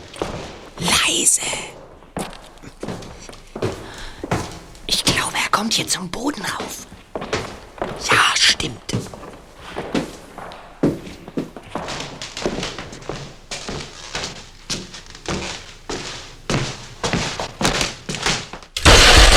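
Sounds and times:
scuffing steps: 0.0 - 18.8
speech: 5.6 - 6.9, 8.0 - 9.1
ladder being knocked over with wooden thunks and knocks: 18.8 - 19.3
sudden louder crash: 18.8 - 19.3.

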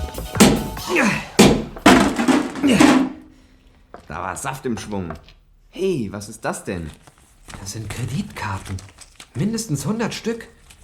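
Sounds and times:
heavy splitting hammer slamming on a metal cassette: 0.4 - 0.8, 1.4 - 3.2
speech: 0.9 - 1.3, 2.7 - 3.1, 4.1 - 10.6.

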